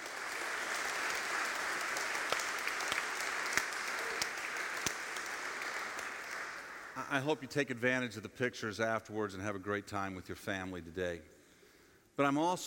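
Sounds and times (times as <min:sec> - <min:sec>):
crowd applauding: 0:00.0 - 0:07.1
speech: 0:07.1 - 0:11.3, 0:12.2 - 0:12.6.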